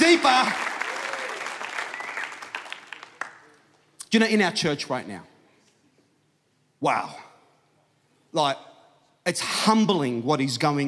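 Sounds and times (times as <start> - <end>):
audience round of applause: 0.0 - 3.6
speech: 4.1 - 5.3, 6.8 - 7.3, 8.3 - 10.8.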